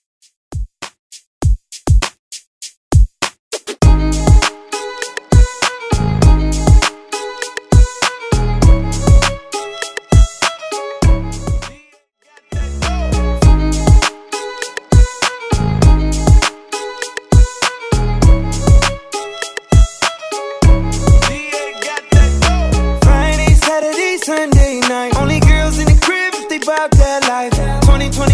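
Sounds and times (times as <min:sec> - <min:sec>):
RnB music: 0:03.5 - 0:28.3.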